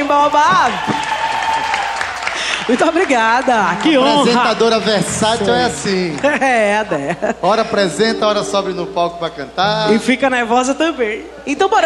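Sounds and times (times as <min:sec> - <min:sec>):
audience applause: 0:00.0 - 0:06.4
speech: 0:00.1 - 0:01.1, 0:02.7 - 0:11.8
laughter: 0:03.9 - 0:08.0.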